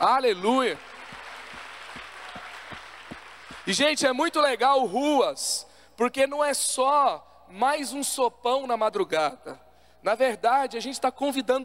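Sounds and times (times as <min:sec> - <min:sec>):
speech: 0:00.0 - 0:00.9, 0:03.7 - 0:11.6
crowd applauding: 0:00.0 - 0:04.1.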